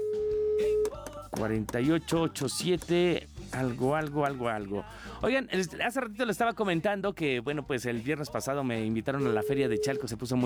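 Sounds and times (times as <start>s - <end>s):
telephone tone while dialing a number: 0.0s - 1.0s, 9.3s - 10.2s
speech: 1.4s - 10.4s
short beeps: 9.4s - 10.2s.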